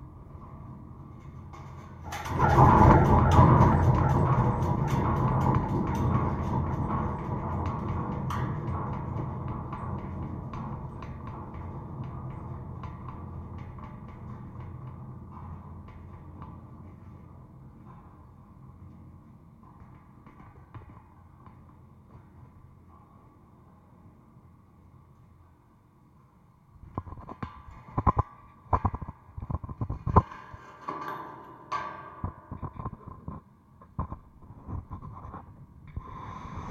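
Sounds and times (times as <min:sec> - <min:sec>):
steady mid hum: 0:00.0 - 0:19.6
sharp knocks and rattles on a gate: 0:00.4 - 0:17.2, 0:26.9 - 0:35.4
gate clang picked up through a contact mic: 0:01.2 - 0:11.8.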